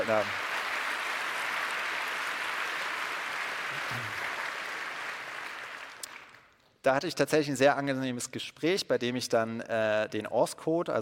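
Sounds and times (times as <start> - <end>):
applause: 0.0 - 6.7
speech: 0.1 - 0.4, 3.8 - 4.2, 6.8 - 11.0.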